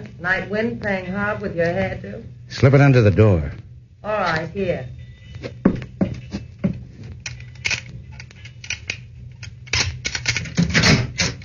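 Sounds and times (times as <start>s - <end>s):
speech: 0.2s - 5.8s
lock being picked with a hairpin: 7.2s - 11.4s.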